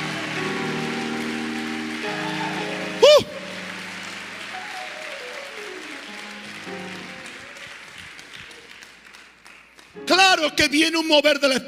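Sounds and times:
audience applause: 0:00.0 - 0:10.0
speech: 0:10.4 - 0:11.6.

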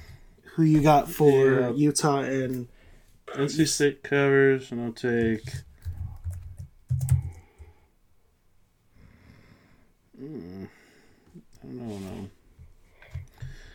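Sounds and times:
speech: 0:00.6 - 0:05.7
computer keyboard typing: 0:05.3 - 0:07.8.

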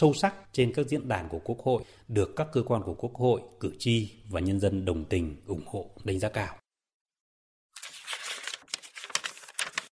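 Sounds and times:
speech: 0:00.0 - 0:06.6
pages of a Vietnamese National Assembly 70th-anniversary yearbook being turned: 0:07.8 - 0:09.9.

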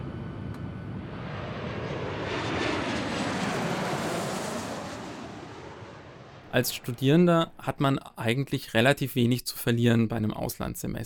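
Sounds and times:
airplane engine during takeoff: 0:00.0 - 0:07.0
speech: 0:06.5 - 0:11.0.

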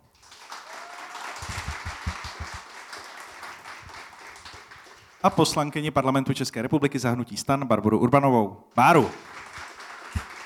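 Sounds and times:
audience applause: 0:00.1 - 0:05.7, 0:08.8 - 0:10.4
speech: 0:05.2 - 0:09.4.

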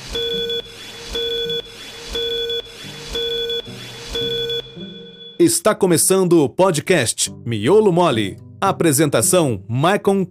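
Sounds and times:
five-second electronic beep sequence: 0:00.0 - 0:05.4
speech: 0:05.4 - 0:10.2.

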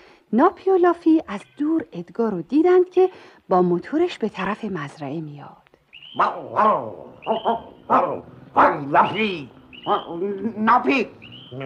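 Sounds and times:
speech: 0:00.3 - 0:11.6
dogs barking: 0:06.0 - 0:11.6
dog whining: 0:06.2 - 0:10.5.

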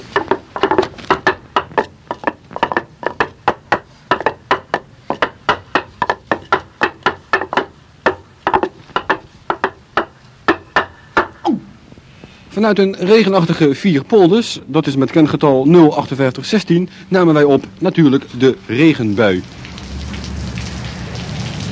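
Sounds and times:
wooden clogs clattering in a clog dance: 0:00.0 - 0:11.6
speech: 0:12.6 - 0:19.6.

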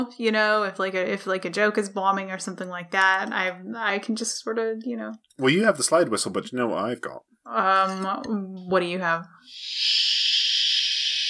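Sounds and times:
speech: 0:00.0 - 0:10.4
baby shusher device making shushing hiss: 0:09.4 - 0:11.2.

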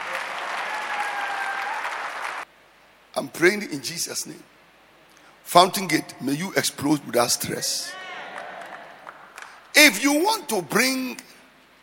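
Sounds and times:
crowd applauding: 0:00.0 - 0:02.5, 0:07.9 - 0:09.7
speech: 0:03.2 - 0:04.6, 0:05.5 - 0:08.0, 0:09.8 - 0:11.4.

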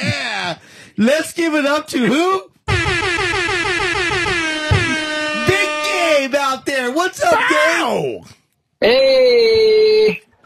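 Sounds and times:
speech: 0:00.0 - 0:02.5, 0:06.2 - 0:10.2
buzzer horn: 0:02.7 - 0:06.5.

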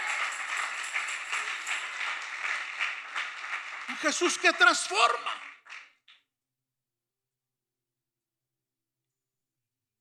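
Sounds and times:
audience applause: 0:00.0 - 0:06.0
speech: 0:03.9 - 0:05.4.

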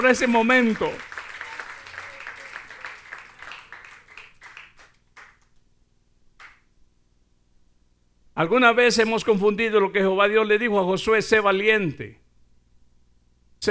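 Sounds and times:
speech: 0:00.0 - 0:01.1, 0:08.4 - 0:12.2
audience applause: 0:00.0 - 0:05.5.

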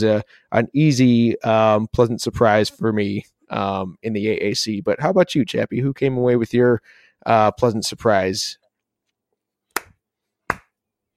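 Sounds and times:
speech: 0:00.0 - 0:08.6
sharp hand claps: 0:09.7 - 0:11.1.

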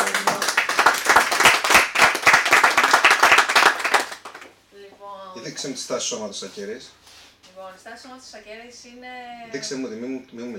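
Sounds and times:
small group clapping: 0:00.0 - 0:04.6
speech: 0:05.6 - 0:07.0, 0:07.8 - 0:10.5.

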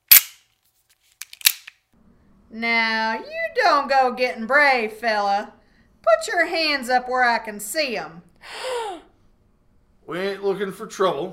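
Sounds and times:
revolver hammer being cocked: 0:00.0 - 0:00.4, 0:01.2 - 0:01.8
speech: 0:02.5 - 0:08.7, 0:10.1 - 0:11.3.

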